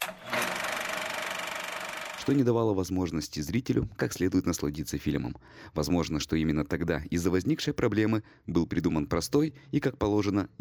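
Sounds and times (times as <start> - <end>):
film projector clattering: 0.0 - 2.4
speech: 2.3 - 10.6.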